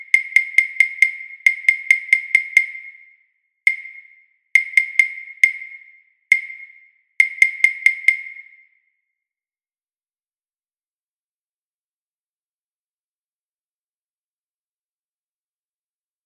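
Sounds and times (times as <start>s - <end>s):
slow rhythm basics exercise: 0.0s - 3.1s, 3.7s - 8.6s.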